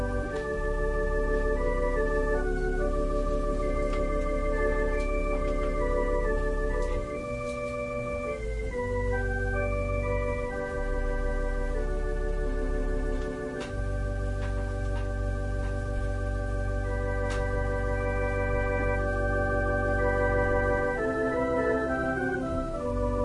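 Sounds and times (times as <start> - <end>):
organ: 0.0 - 23.2
piano: 0.0 - 23.2.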